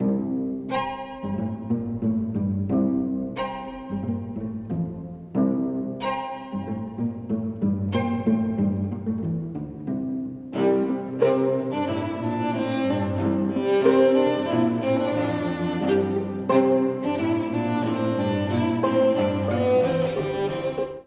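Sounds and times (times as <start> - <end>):
string quartet playing: 0.0 - 21.0.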